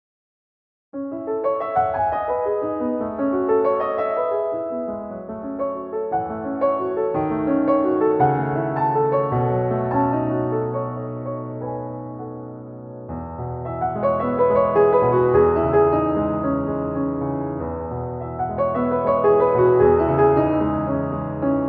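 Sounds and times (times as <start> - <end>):
piano piece: 1.0 - 21.6.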